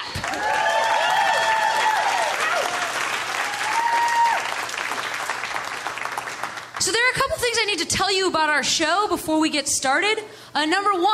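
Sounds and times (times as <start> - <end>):
clapping: 0.0 - 6.9
speech: 7.6 - 11.1.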